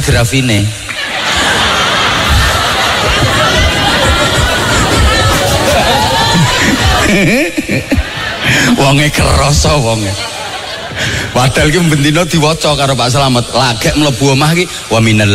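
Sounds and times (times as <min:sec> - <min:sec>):
speech: 0:00.0 - 0:00.8, 0:07.1 - 0:10.3, 0:11.0 - 0:15.3
laughter: 0:00.8 - 0:12.3
crowd chatter at an Islamic gathering: 0:00.8 - 0:15.3
audience applause at an Islamic gathering: 0:00.9 - 0:08.7.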